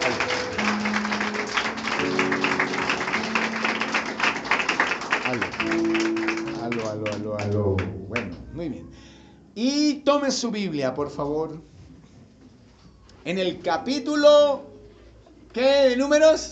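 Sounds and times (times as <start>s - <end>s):
audience applauding: 0.0s - 8.3s
speech: 9.6s - 11.8s, 13.2s - 14.7s, 15.6s - 16.5s.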